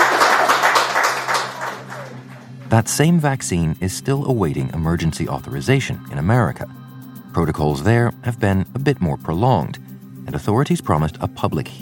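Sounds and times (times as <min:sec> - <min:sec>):
round of applause: 0:00.0 - 0:02.7
speech: 0:02.7 - 0:06.8, 0:07.4 - 0:11.8.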